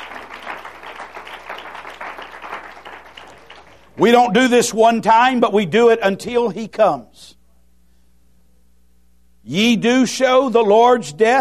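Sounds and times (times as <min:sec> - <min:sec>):
audience clapping hands in praise: 0:00.0 - 0:04.1
speech: 0:04.0 - 0:07.4, 0:09.5 - 0:11.3.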